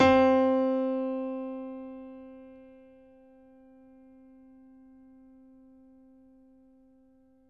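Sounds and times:
piano: 0.0s - 7.4s.

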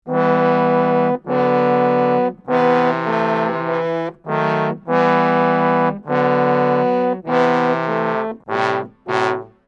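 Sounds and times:
low brass part in E minor: 0.0s - 9.6s.

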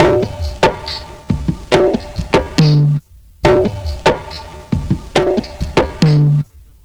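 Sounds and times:
lowdown dirty conga groove at 70bpm: 0.0s - 6.5s.

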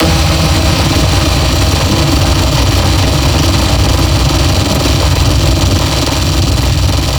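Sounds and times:
glitch sound: 0.0s - 7.0s.

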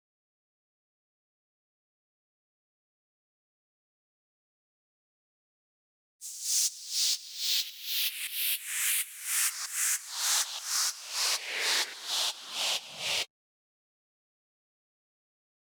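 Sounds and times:
128 BPM noise effect: 6.2s - 13.3s.

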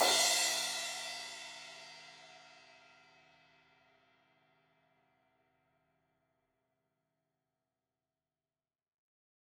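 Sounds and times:
16-inch crash cymbal hit on the edge: 0.0s - 1.4s.

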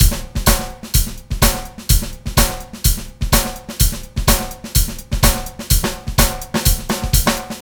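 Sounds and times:
samba dance loop: 0.0s - 7.6s.

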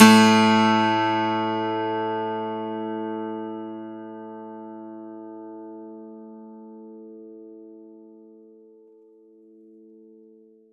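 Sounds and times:
plucked acoustic and electric 12-string guitar: 0.0s - 6.5s.

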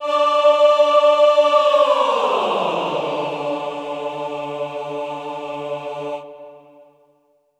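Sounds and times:
classical choir glissando from D3 to D4: 0.0s - 7.1s.

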